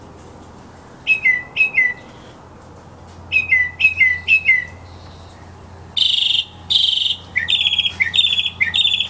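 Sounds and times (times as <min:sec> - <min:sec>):
mockingbird song: 0:01.1 - 0:02.1, 0:03.3 - 0:09.0.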